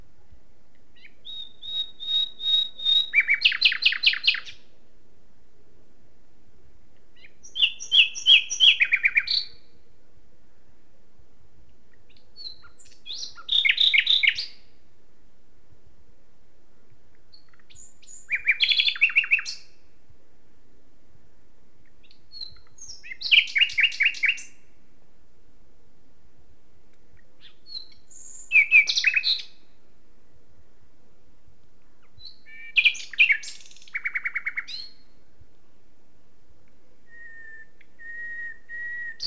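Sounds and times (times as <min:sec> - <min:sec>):
Common nightingale singing: 0:01.0 - 0:04.7, 0:07.2 - 0:09.8, 0:12.1 - 0:14.7, 0:17.3 - 0:19.8, 0:21.9 - 0:24.7, 0:27.1 - 0:29.7, 0:32.0 - 0:35.2, 0:37.0 - 0:39.2.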